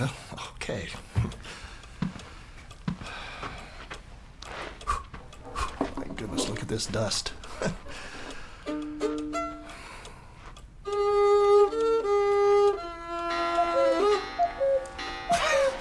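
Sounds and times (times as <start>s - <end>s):
speech: 0.0s - 1.4s, 6.7s - 7.8s
faint cuckoo clock ticking: 0.0s - 15.7s
cuckoo clock piping: 4.8s - 15.7s.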